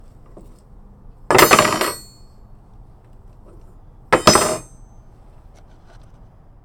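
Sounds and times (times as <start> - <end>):
metal object dropped: 1.3 - 2.2, 4.2 - 4.8.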